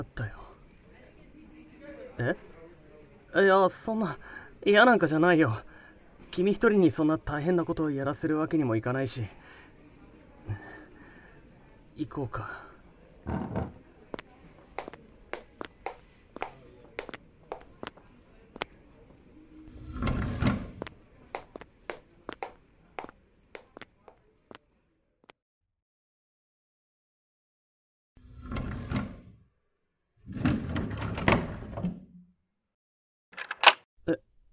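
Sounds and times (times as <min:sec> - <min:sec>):
speech: 0:02.2 - 0:02.5, 0:03.3 - 0:05.7, 0:06.3 - 0:09.6, 0:12.0 - 0:12.6, 0:13.3 - 0:13.8
footsteps: 0:14.8 - 0:18.0
sliding door shutting with a rumbling scrape: 0:19.7 - 0:20.8, 0:28.2 - 0:29.4, 0:30.3 - 0:32.1
lock clicking: 0:33.4 - 0:33.8.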